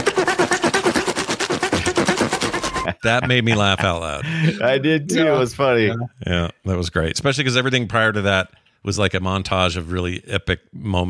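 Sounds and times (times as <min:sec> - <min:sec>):
sawing sound effect: 0:00.0 - 0:02.9
speech: 0:03.0 - 0:11.0.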